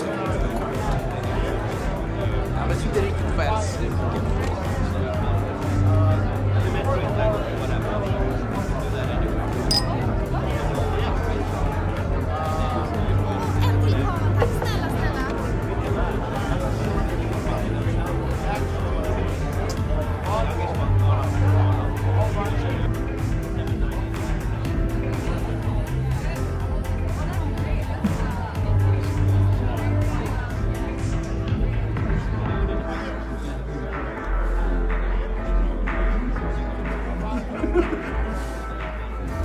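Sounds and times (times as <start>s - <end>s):
steady dense babble of many voices in a bar: 0.0s - 39.4s
clinks in a bar: 9.7s - 10.0s
laughter: 36.8s - 39.0s.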